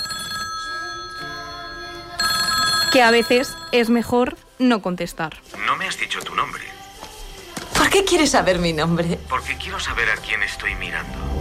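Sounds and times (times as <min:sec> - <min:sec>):
telephone ringing: 0:00.0 - 0:04.4
speech: 0:02.9 - 0:06.7, 0:07.9 - 0:11.3.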